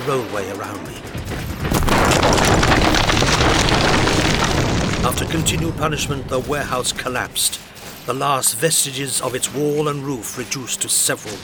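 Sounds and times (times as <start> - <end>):
speech: 0.0 - 1.4, 5.0 - 11.4
explosion of burning gas: 1.1 - 7.9.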